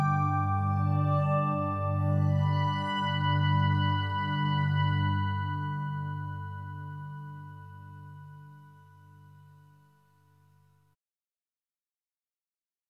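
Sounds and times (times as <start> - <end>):
backing track: 0.0 - 8.4.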